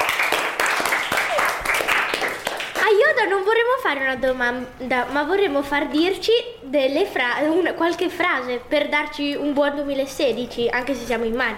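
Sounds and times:
audience applause: 0.0s - 2.9s
speech: 3.2s - 11.5s.

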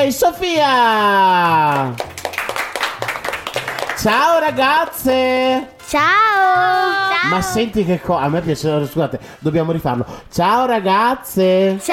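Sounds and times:
speech: 0.0s - 2.1s, 4.0s - 11.9s
audience applause: 1.4s - 4.2s.

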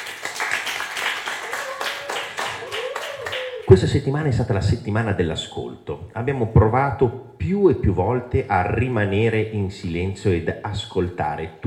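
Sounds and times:
group applauding: 0.0s - 3.9s
speech: 3.7s - 11.6s.

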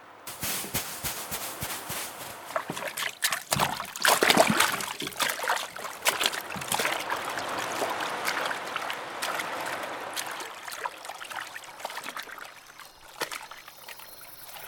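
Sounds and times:
swimmer plunging into the sea off a tropical island: 0.3s - 11.5s
churning, bubbling and trickling water from swimming: 0.7s - 13.6s.

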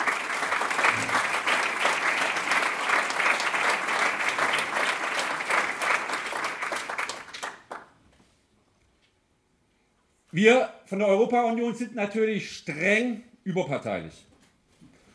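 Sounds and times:
audience applause: 0.0s - 8.0s
speech: 10.4s - 14.3s.

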